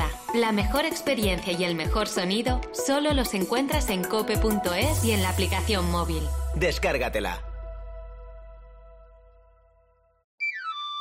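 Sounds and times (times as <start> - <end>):
speech: 0.4 - 7.5
knife sharpener's panpipe whistle melody: 10.4 - 10.9.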